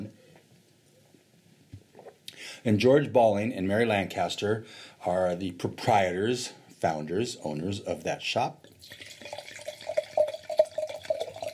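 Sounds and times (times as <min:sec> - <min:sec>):
speech: 0:02.6 - 0:09.1
wine pouring into a glass: 0:08.7 - 0:11.5.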